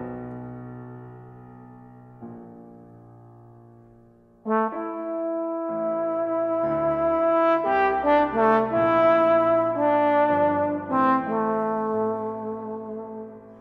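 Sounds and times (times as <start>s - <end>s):
trombone: 4.4s - 13.5s.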